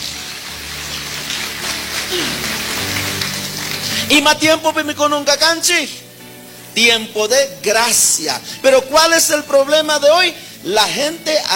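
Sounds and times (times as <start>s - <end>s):
loud audience applause: 0.0s - 4.1s
speech: 4.1s - 6.0s, 6.8s - 11.5s.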